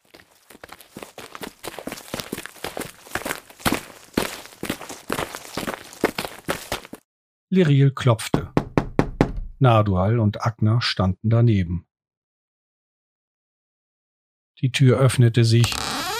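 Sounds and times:
footsteps of three people walking together: 0:00.0 - 0:07.0
speech: 0:07.5 - 0:08.4, 0:09.6 - 0:11.9, 0:14.6 - 0:15.9.

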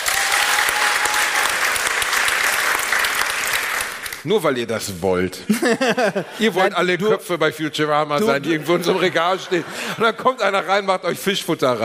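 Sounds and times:
audience clapping: 0:00.0 - 0:04.3
speech: 0:04.2 - 0:11.8
laughter: 0:05.4 - 0:06.8, 0:08.2 - 0:10.6.

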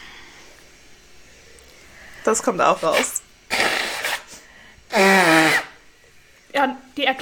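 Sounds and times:
speech: 0:02.2 - 0:03.2
person blowing nose: 0:02.9 - 0:05.8.

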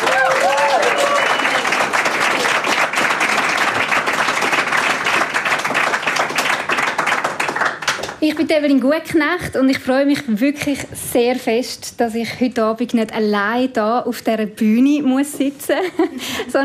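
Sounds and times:
live audience applause welcoming a stage show in Pfäffikon, Zürich: 0:00.0 - 0:08.2
speech: 0:08.3 - 0:16.6.

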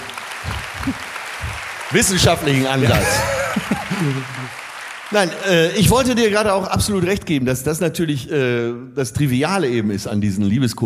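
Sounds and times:
laughter: 0:00.0 - 0:01.1, 0:01.9 - 0:06.5
audience applause: 0:00.0 - 0:06.8
speech: 0:00.8 - 0:01.1, 0:01.9 - 0:10.8.

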